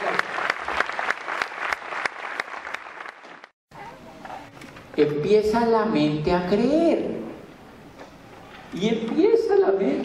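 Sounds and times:
audience applause: 0.0 - 3.5
speech: 5.0 - 7.1, 8.8 - 9.1.

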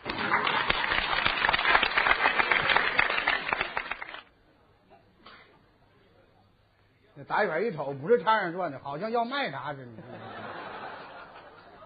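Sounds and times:
audience applause: 0.0 - 4.3
speech: 7.3 - 10.1
laughter: 9.9 - 11.8.

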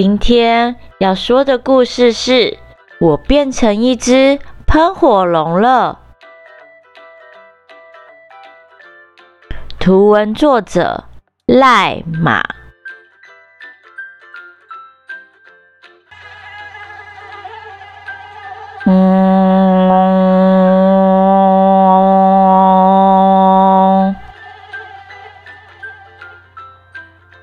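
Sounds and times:
speech: 0.0 - 6.0, 9.8 - 12.6
mosquito buzzing: 18.8 - 24.4
low hum: 18.9 - 24.3.

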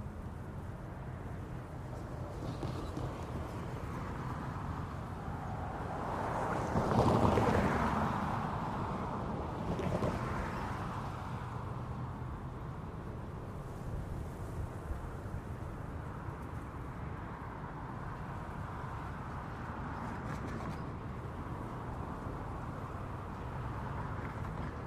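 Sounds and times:
traffic rumble in an old Western American town: 0.0 - 24.8.

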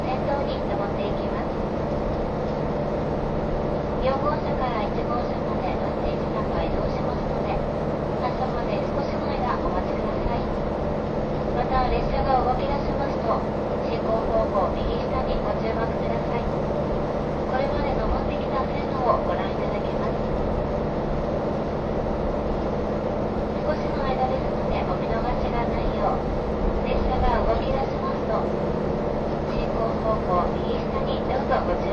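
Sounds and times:
KiHa 183 series train diesel engine droning: 0.0 - 31.9
passengers chattering: 0.0 - 31.9.

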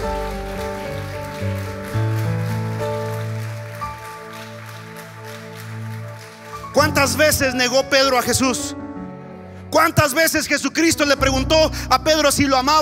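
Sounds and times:
audience applause: 0.0 - 7.9
sustained keyboard chords: 0.0 - 12.7
speech: 7.0 - 8.8, 9.8 - 12.8.

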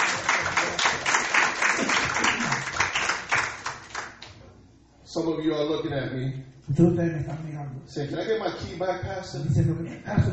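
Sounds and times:
audience applause: 0.0 - 4.3
speech: 5.2 - 10.3.

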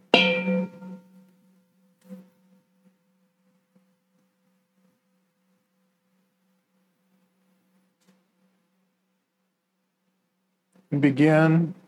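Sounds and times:
meditation bell ringing: 0.2 - 1.0
speech: 10.9 - 11.8.

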